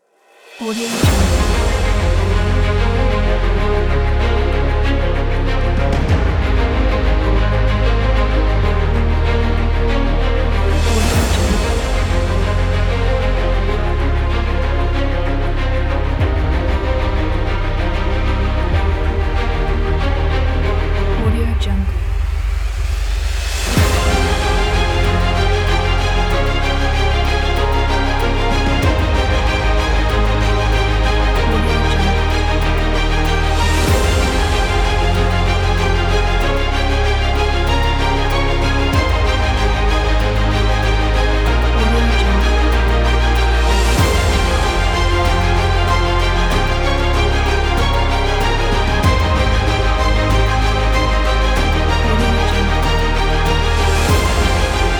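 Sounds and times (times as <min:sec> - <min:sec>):
epic cinematic music: 0:00.2 - 0:54.9.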